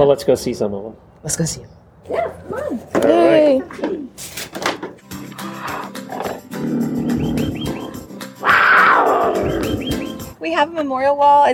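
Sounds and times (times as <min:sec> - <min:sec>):
speech: 0:00.0 - 0:04.7, 0:10.4 - 0:11.5
big cats roaring and growling at a rescue: 0:05.4 - 0:10.0.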